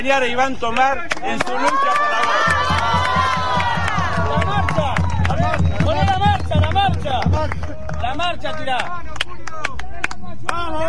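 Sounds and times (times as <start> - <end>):
speech: 0.0 - 3.2, 7.4 - 9.1
crowd at a union gathering in the La Plata region cheering and applauding: 1.1 - 10.8.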